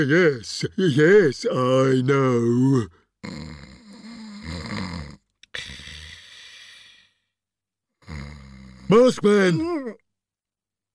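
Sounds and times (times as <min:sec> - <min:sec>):
speech: 0:00.0 - 0:03.7, 0:08.9 - 0:10.0
loud rasping snores: 0:02.8 - 0:07.2, 0:08.0 - 0:09.2
short gasp: 0:05.4 - 0:07.2.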